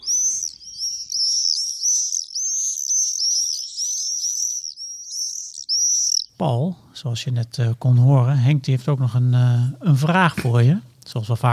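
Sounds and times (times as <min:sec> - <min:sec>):
common swift calls: 0:00.0 - 0:06.4
speech: 0:06.4 - 0:11.5.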